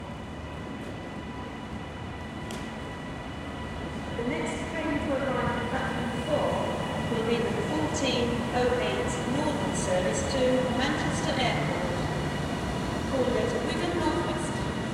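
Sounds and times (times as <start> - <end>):
train station ambience: 0.0 - 14.9.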